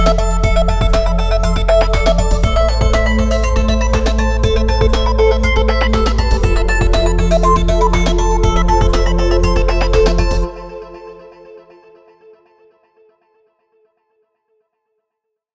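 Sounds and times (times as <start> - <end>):
EDM news opening music: 0.0 - 11.2.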